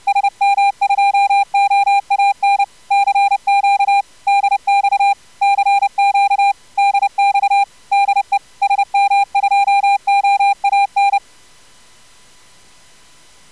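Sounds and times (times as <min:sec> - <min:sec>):
CW morse code tones with jitter: 0:00.1 - 0:11.2.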